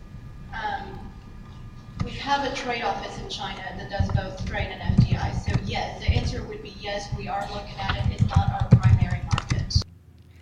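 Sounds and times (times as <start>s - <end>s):
speech: 2.3s - 9.8s
typing on a small HP computer keyboard: 7.8s - 9.8s.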